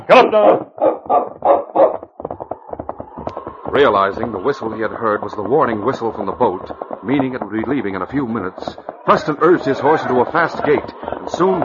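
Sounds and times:
speech: 0:00.0 - 0:02.0, 0:03.7 - 0:11.6
dog barking and yapping: 0:00.3 - 0:02.0.

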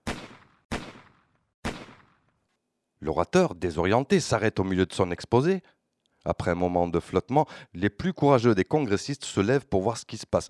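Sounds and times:
gunshots: 0:00.0 - 0:02.3
speech: 0:03.1 - 0:10.4.

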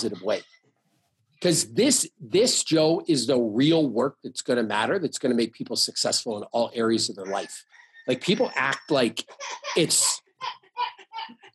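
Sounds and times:
laughter: 0:00.0 - 0:00.4, 0:01.4 - 0:10.2, 0:11.1 - 0:11.5
rooster calling: 0:00.0 - 0:00.4, 0:06.9 - 0:10.2
speech: 0:00.0 - 0:00.6, 0:01.4 - 0:11.5.

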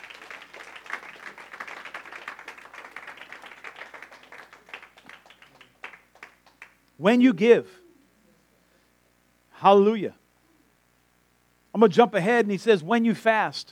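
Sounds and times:
audience clapping: 0:00.0 - 0:06.9
speech: 0:07.0 - 0:07.8, 0:09.6 - 0:10.2, 0:11.8 - 0:13.7.

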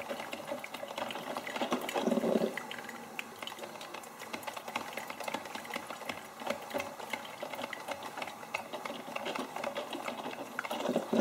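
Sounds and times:
coffee maker heating and brewing water: 0:00.0 - 0:11.2.

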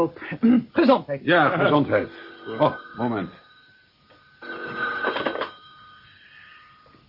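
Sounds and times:
speech: 0:00.0 - 0:03.4
telephone bell ringing: 0:01.6 - 0:07.0.

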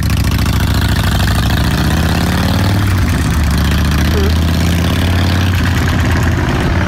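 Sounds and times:
Harley motorcycle engine idling: 0:00.0 - 0:02.0, 0:02.8 - 0:06.4
voice murmuring: 0:04.0 - 0:04.4.

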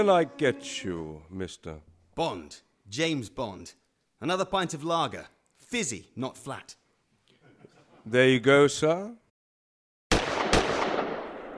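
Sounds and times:
speech: 0:00.0 - 0:06.8, 0:08.0 - 0:09.2
gunshots: 0:10.1 - 0:11.5.

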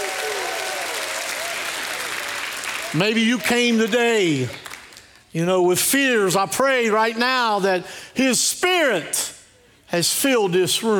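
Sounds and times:
church congregation applause as a hand clap of praise: 0:00.0 - 0:05.3
speech: 0:02.9 - 0:04.6, 0:05.3 - 0:10.9.

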